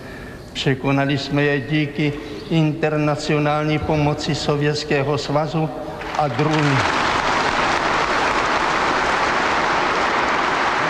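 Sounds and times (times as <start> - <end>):
speech: 0.6 - 6.9
applause and cheering at party congress: 6.0 - 10.8.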